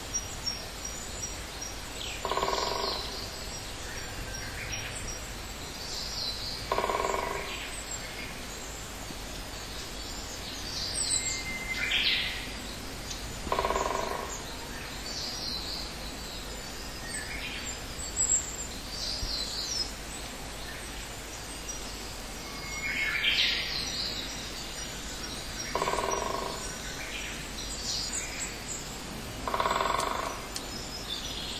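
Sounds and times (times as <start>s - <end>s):
outdoor hiss: 0.0s - 31.5s
songbird twittering calls: 0.0s - 31.5s
great spotted woodpecker drumming: 2.2s - 3.4s, 6.6s - 7.6s, 13.4s - 14.5s, 25.7s - 26.9s, 29.4s - 30.6s.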